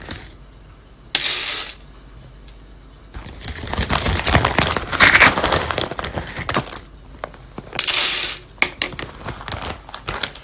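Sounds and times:
green coffee beans roasting, crackling and popping: 1.2s - 1.8s, 3.4s - 6.9s, 7.8s - 10.4s.

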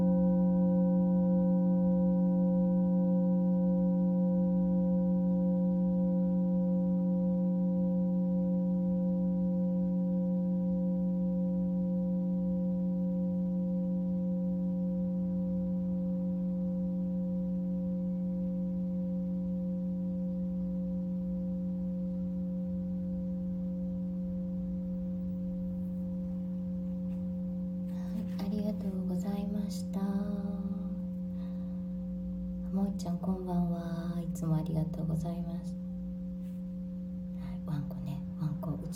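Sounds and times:
singing bowl ringing: 0.0s - 38.9s
person speaking: 28.0s - 31.0s, 32.7s - 35.8s, 37.4s - 38.9s.

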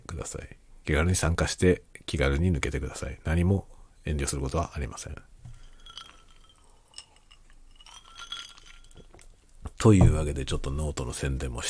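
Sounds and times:
speech: 0.2s - 5.3s, 9.8s - 11.6s
faint whisky sloshing: 5.5s - 9.6s
whisky glass clinking while drinking: 5.5s - 10.2s.

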